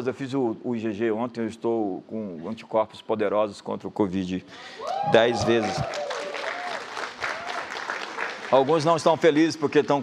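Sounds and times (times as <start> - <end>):
speech: 0.0 - 6.1, 8.5 - 10.0
audience clapping: 4.8 - 10.0.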